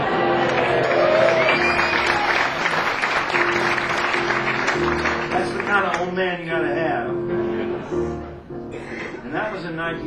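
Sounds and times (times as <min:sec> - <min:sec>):
audience applauding: 0:00.0 - 0:06.0
speech: 0:06.0 - 0:07.3, 0:09.3 - 0:10.0.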